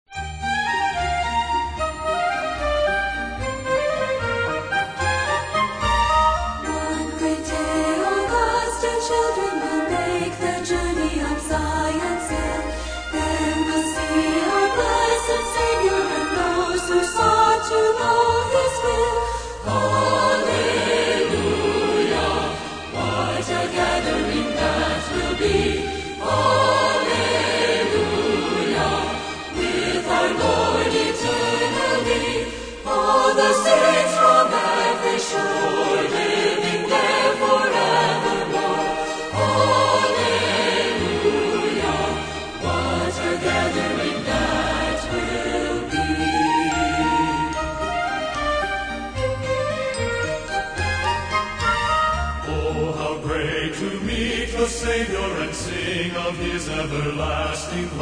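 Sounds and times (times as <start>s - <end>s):
orchestra playing: 0.2s - 54.4s
choir singing: 1.5s - 49.8s, 52.4s - 58.0s.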